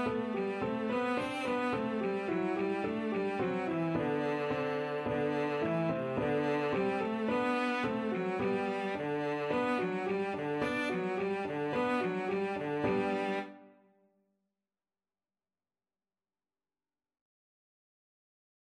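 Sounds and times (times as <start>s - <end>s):
cello piece: 0.0s - 13.8s.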